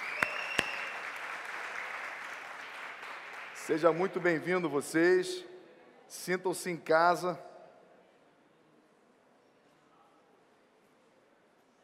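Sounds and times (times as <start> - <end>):
church audience applauding: 0.0 - 4.7
speech: 3.7 - 5.5, 6.1 - 7.5.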